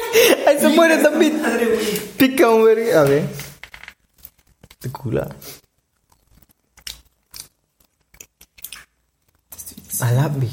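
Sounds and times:
laughter: 0.0 - 2.2
speech: 0.1 - 3.4, 4.8 - 5.6, 10.0 - 10.5
person chewing crunchy food: 4.1 - 9.6.

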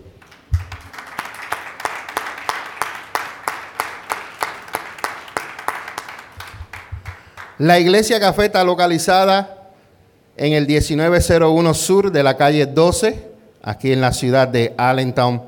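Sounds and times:
audience applause: 0.2 - 7.6
speech: 7.6 - 9.6, 10.4 - 15.4.

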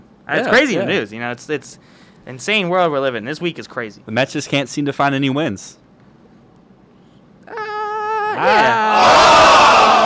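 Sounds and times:
speech: 0.3 - 5.8, 8.4 - 9.5
studio audience member whooping: 7.4 - 10.0
studio audience cheering and applause: 8.6 - 10.0.

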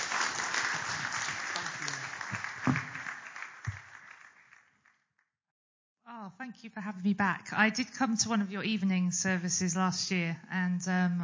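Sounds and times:
audience applause: 0.0 - 5.0
speech: 6.3 - 11.2.

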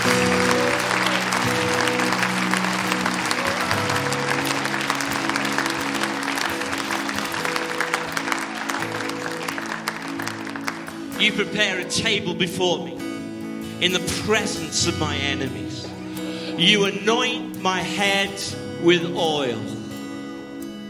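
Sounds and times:
audience clapping in praise: 0.0 - 11.9
speech: 11.4 - 13.1, 13.8 - 15.9, 16.6 - 19.8.

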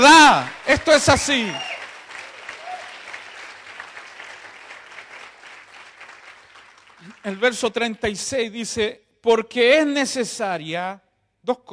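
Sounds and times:
speech: 0.0 - 1.8, 7.2 - 11.7
audience applause: 0.0 - 7.4.

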